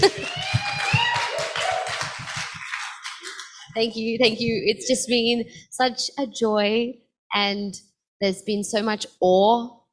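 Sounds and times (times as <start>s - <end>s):
people cheering: 0.0s - 3.7s
small group clapping hands: 0.0s - 3.9s
speech: 3.8s - 9.8s.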